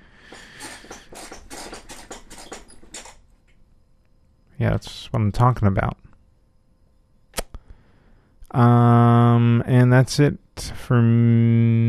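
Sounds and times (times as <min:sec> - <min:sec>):
chair squeaking and creaking: 0:00.2 - 0:03.3
speech: 0:04.6 - 0:06.0, 0:08.5 - 0:11.8.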